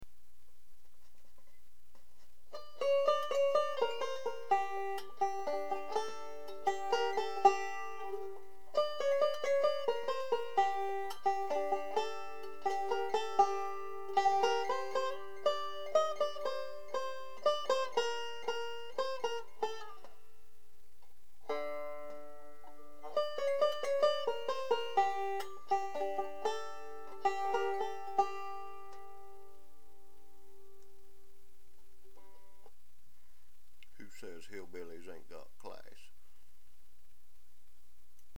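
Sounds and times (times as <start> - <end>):
banjo playing classical music: 2.5 - 20.5, 21.4 - 31.3.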